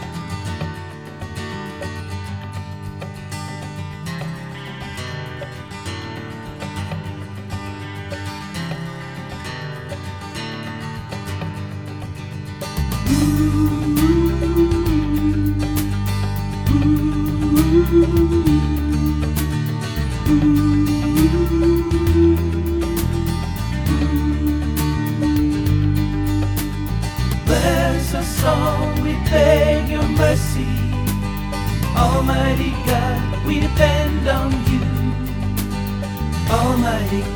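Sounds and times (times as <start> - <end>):
instrumental chorus: 13.0 - 37.3.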